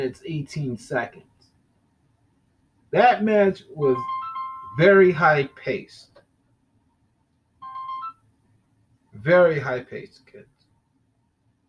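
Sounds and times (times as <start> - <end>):
speech: 0.0 - 1.3, 2.9 - 4.2, 4.8 - 6.1, 9.2 - 10.5
mobile phone ringtone: 3.9 - 5.6, 7.6 - 8.2.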